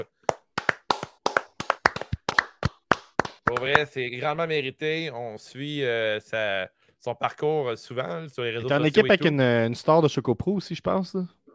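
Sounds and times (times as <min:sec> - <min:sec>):
hosts clapping hands: 0:00.0 - 0:04.0
speech: 0:03.5 - 0:11.4.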